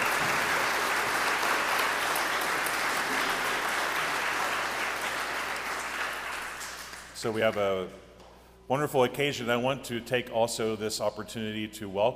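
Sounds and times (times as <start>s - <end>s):
crowd applauding: 0.0s - 7.2s
speech: 7.2s - 8.0s, 8.7s - 12.1s.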